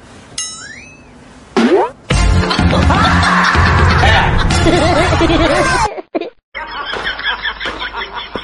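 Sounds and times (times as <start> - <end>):
person laughing: 2.5 - 8.4.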